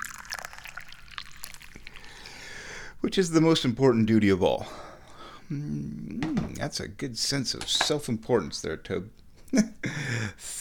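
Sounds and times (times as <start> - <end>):
tea pouring: 0.0 - 2.6
speech: 3.0 - 4.9, 5.5 - 10.5.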